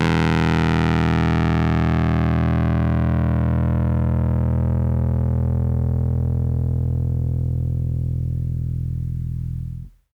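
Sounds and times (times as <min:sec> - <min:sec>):
Rhodes electric piano with fuzz: 0:00.0 - 0:10.1.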